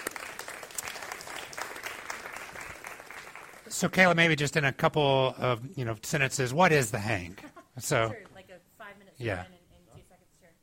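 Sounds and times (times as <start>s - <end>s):
church congregation applauding to welcome guests at a morning service: 0.0s - 4.2s
speech: 3.8s - 8.3s, 9.2s - 9.6s.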